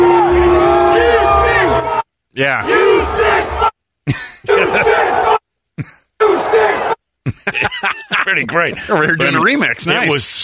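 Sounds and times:
stadium crowd chanting loudly at football game: 0.0s - 2.0s, 2.6s - 3.7s, 4.5s - 5.4s, 6.2s - 7.0s
speech: 2.4s - 5.0s, 8.4s - 10.4s
laughter: 4.1s - 5.2s, 7.2s - 9.5s.

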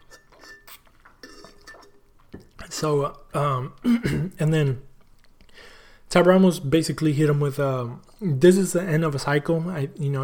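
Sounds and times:
glass clinking: 0.0s - 2.5s
person sipping water from a glass: 0.0s - 3.8s
speech: 2.7s - 4.9s, 6.1s - 10.2s.

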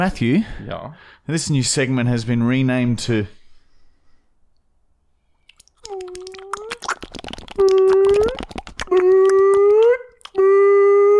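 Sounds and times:
speech: 0.0s - 3.4s
bottle sound: 5.4s - 10.4s.

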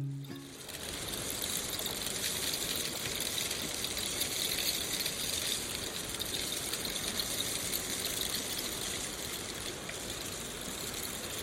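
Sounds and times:
rain stick: 0.0s - 11.4s.

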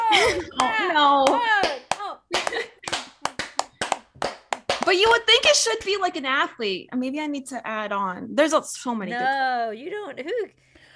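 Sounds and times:
speech: 0.2s - 1.8s, 4.9s - 10.7s
slow hand clap: 0.6s - 6.0s.

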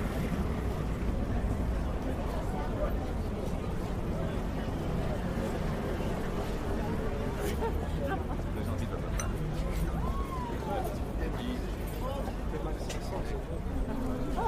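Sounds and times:
Parisian cafe overlapping chatter: 0.0s - 14.4s
faint clinks: 9.2s - 9.5s.

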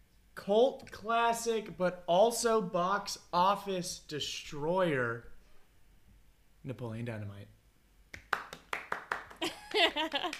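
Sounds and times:
speech: 0.5s - 5.3s, 6.6s - 7.6s, 9.8s - 10.3s
person clapping: 8.1s - 10.3s.

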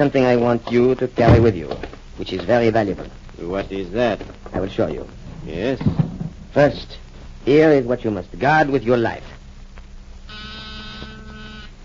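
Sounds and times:
speech: 0.0s - 9.4s
small battery-powered door buzzer: 10.3s - 11.8s.

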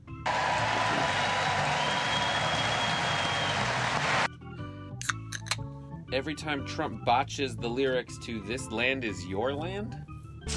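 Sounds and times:
raucous audience ovation: 0.3s - 4.3s
speech: 6.1s - 10.5s.

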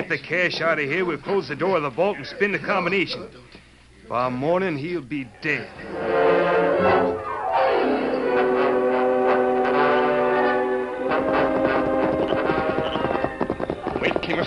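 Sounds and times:
speech: 0.0s - 7.2s
orchestral music with a sweeping falling phrase: 5.8s - 12.8s
horses' hooves clip-clopping: 11.0s - 14.4s
wagon rolling by: 11.2s - 14.4s.

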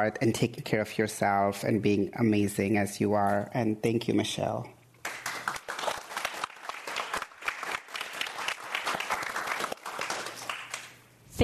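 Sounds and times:
speech: 0.0s - 4.8s
audience applause for speakers: 5.0s - 11.0s.

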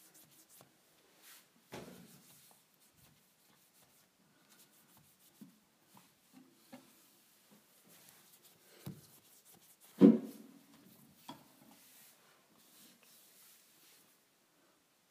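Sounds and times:
kitchen appliances being cleaned with rubbing and scraping strokes: 2.1s - 6.2s, 6.8s - 14.2s.

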